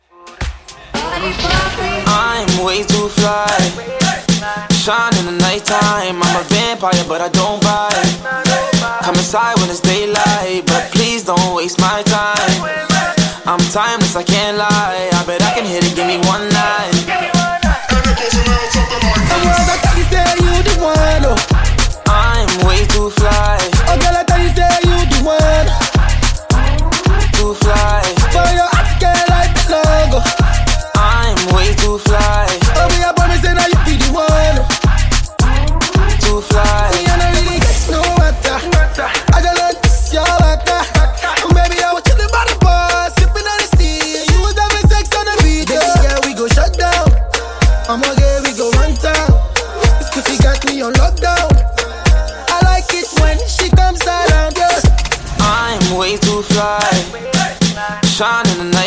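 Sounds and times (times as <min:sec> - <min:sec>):
moombahton dance music: 0:00.0 - 0:58.8.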